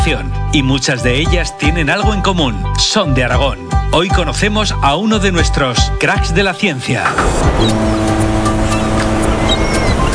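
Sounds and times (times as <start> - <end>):
speech: 0.1 - 8.5
seaside ambience with sea waves: 7.2 - 10.1.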